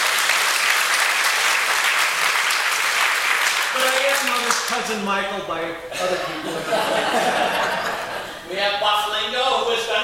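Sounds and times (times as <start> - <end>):
audience applause: 0.0 - 4.8
speech: 3.9 - 10.0
laughter: 5.9 - 8.5.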